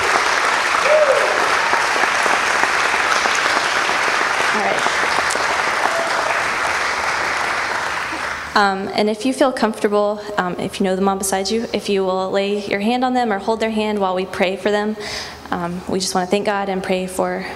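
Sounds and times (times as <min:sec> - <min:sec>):
large crowd applauding: 0:00.0 - 0:08.6
speech: 0:08.6 - 0:17.5.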